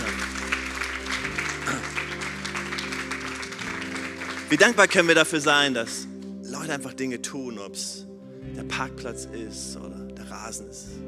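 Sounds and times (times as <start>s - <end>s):
audience applause: 0.0s - 6.1s
speech: 4.5s - 11.0s.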